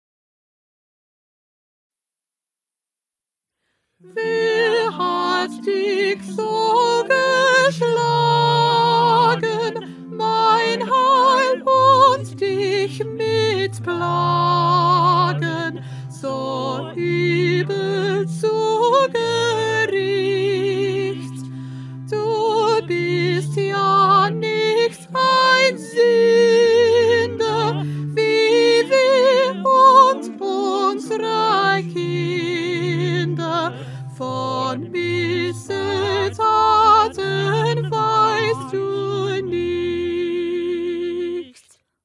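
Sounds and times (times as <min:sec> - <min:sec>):
soprano singing: 0:04.0 - 0:41.8.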